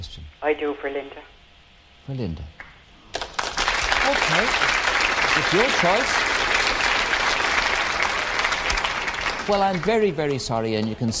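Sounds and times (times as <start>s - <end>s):
speech: 0.0s - 1.4s, 2.1s - 2.7s, 4.0s - 6.5s, 9.5s - 11.1s
television game show audience applause: 3.1s - 10.7s.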